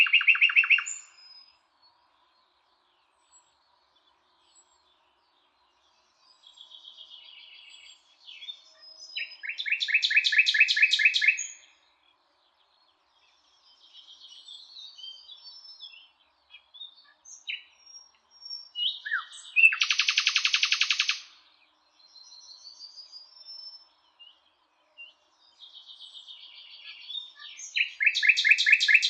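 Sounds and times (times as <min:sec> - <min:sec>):
common nightingale song: 0:00.0 - 0:29.0.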